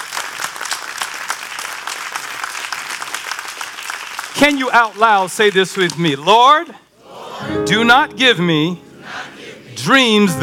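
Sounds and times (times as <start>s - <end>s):
audience clapping: 0.0s - 6.7s
speech: 4.4s - 6.8s, 7.5s - 8.8s, 9.8s - 10.4s.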